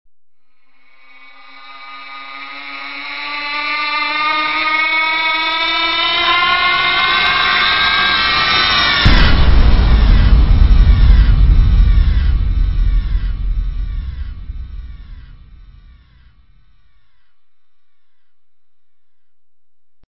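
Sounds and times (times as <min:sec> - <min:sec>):
musical stinger: 0:04.2 - 0:16.6.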